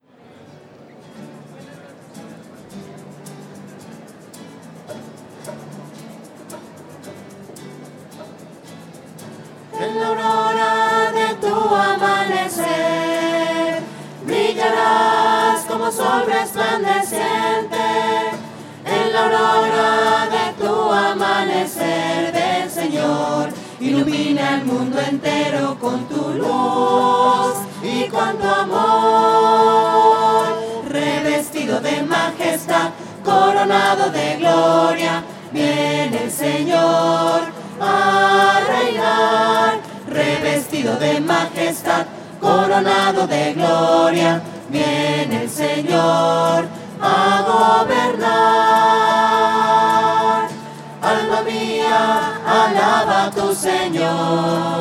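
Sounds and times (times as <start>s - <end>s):
voices: 0.2s - 54.7s.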